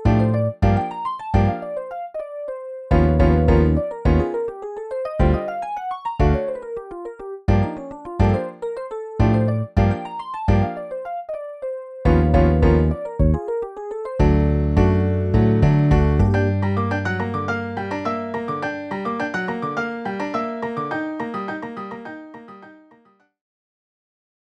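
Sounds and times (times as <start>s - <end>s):
MIDI piano and bass: 0.0s - 5.6s, 6.2s - 6.8s, 7.5s - 11.0s, 12.1s - 13.6s, 14.2s - 22.3s.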